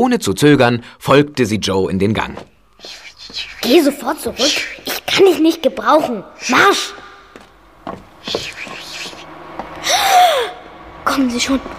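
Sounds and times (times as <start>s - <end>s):
speech: 0.0s - 7.0s, 7.9s - 8.9s, 11.1s - 11.7s
person hissing like a steam locomotive venting: 2.8s - 5.1s, 8.2s - 10.6s.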